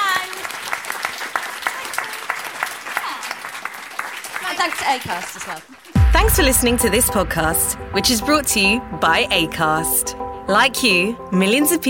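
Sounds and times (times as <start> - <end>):
audience applause: 0.0 - 6.0
speech: 4.6 - 11.8.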